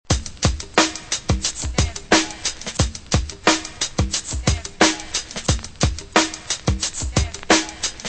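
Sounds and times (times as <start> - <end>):
drum loops: 0.0 - 8.0.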